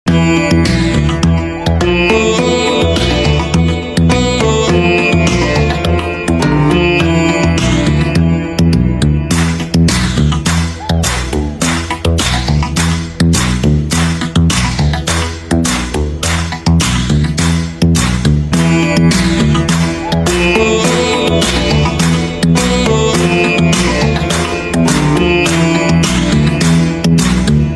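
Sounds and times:
sitar: 0.1s - 27.7s.

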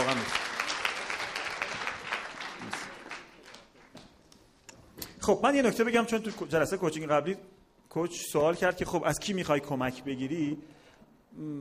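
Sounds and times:
audience applause: 0.0s - 4.0s
speech: 5.3s - 10.8s, 11.4s - 11.5s.

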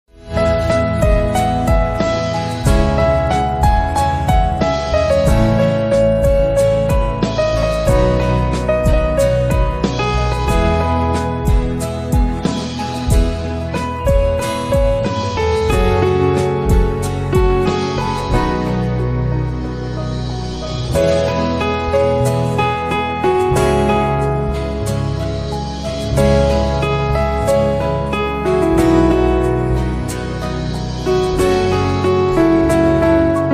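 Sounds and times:
piano: 0.1s - 33.5s.

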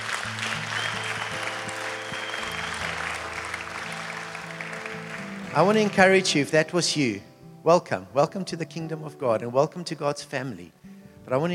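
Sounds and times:
church congregation clapping: 0.0s - 6.5s
speech: 5.5s - 11.5s.

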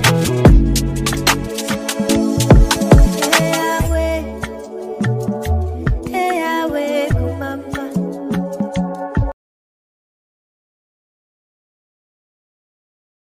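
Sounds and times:
drill music remix: 0.0s - 9.3s.

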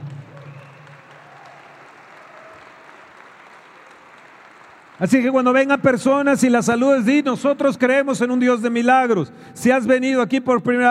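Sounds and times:
audience applause: 0.0s - 5.5s
speech: 5.0s - 10.8s.

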